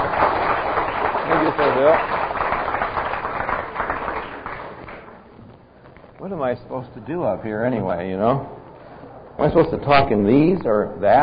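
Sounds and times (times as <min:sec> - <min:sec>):
audience applause: 0:00.0 - 0:05.1
speech: 0:01.8 - 0:02.3, 0:06.4 - 0:08.6, 0:09.4 - 0:11.2.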